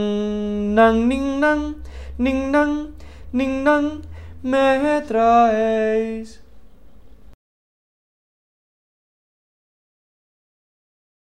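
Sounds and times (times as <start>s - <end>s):
tenor voice singing a Christmas carol: 0.0s - 6.4s.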